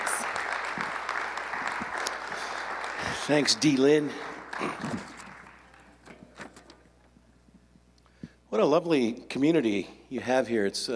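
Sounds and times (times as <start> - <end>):
audience applause: 0.0 - 6.1
speech: 3.2 - 5.2, 8.6 - 10.9.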